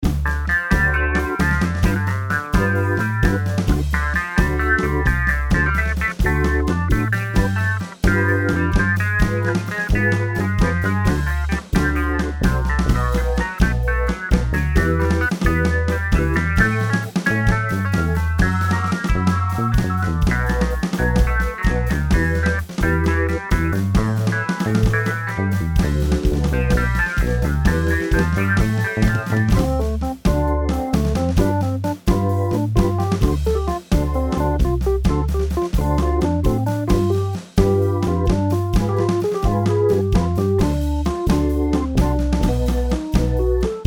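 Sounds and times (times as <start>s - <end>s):
MIDI blues music: 0.0s - 43.8s.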